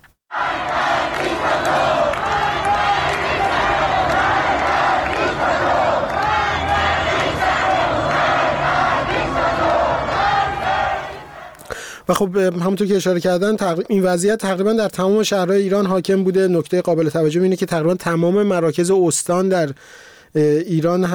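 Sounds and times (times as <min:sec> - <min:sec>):
large crowd of protesters chanting and shouting in Shahrak-e Azadi, Tehran: 0:00.3 - 0:11.7
speech: 0:12.1 - 0:21.1.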